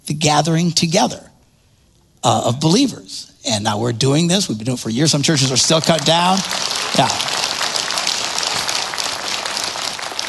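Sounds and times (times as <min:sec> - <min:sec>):
speech: 0:00.1 - 0:01.3, 0:02.2 - 0:07.4
audience clapping: 0:05.1 - 0:10.2.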